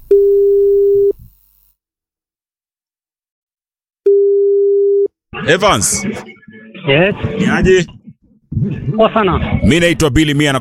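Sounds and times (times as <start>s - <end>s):
telephone line tone as a radio host dials a listener: 0.1s - 1.2s, 4.1s - 5.1s
speech: 5.5s - 8.0s, 8.6s - 10.5s.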